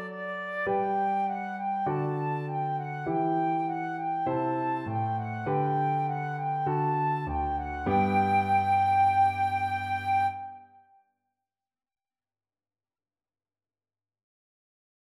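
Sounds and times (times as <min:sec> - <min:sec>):
march played on flute: 0:00.0 - 0:10.8.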